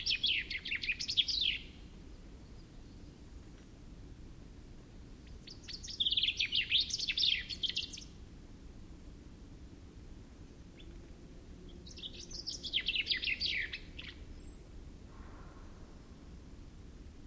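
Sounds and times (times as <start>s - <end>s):
common chaffinch Fringilla coelebs song: 0.0s - 3.4s, 4.6s - 8.2s, 9.6s - 15.0s.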